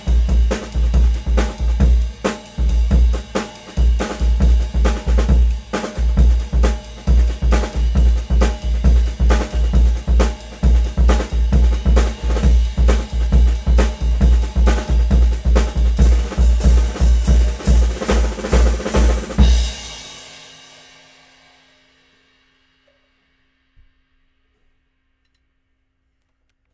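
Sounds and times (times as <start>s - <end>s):
5x14 Rogers Dayton Powertone drum: 0.0s - 21.1s.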